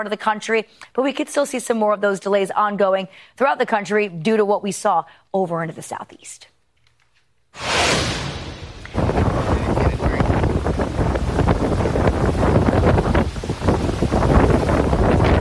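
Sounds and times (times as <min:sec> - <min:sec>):
speech: 0:00.0 - 0:06.5
hurricane wind buffeting the microphone: 0:07.6 - 0:15.3.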